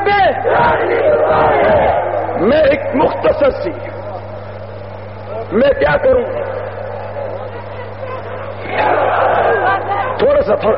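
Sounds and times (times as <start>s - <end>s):
large crowd chanting slogans at a rally: 0.0s - 4.2s, 7.2s - 10.7s
speech: 3.2s - 4.1s, 5.5s - 6.6s, 8.7s - 10.7s.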